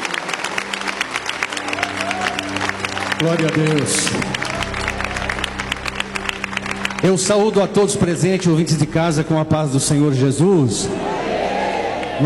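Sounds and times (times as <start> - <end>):
audience applause: 0.0 - 9.0
speech: 3.2 - 4.4, 7.0 - 11.2.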